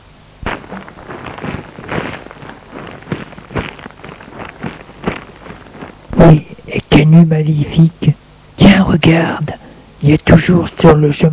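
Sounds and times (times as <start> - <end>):
footsteps on gravel: 0.4 - 6.6
speech: 6.2 - 8.1, 8.9 - 11.3.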